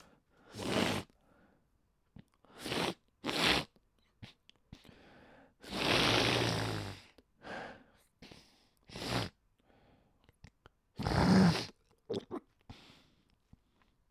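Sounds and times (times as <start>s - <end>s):
runny nose sniffling: 0.0s - 1.2s, 2.5s - 9.4s, 11.0s - 11.8s.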